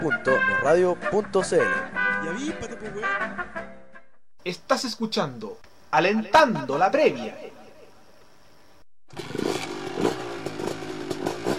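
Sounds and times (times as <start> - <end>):
speech: 0.0 - 3.7, 4.4 - 7.6
motorcycle engine revving: 9.1 - 11.5.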